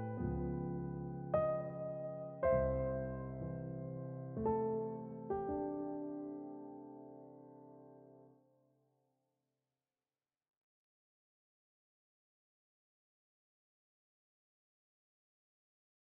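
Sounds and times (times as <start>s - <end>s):
piano waltz duet: 0.0s - 8.3s.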